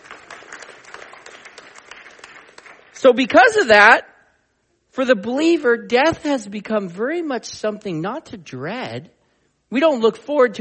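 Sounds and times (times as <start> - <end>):
applause: 0.0 - 3.2
speech: 3.0 - 4.1, 5.0 - 10.5.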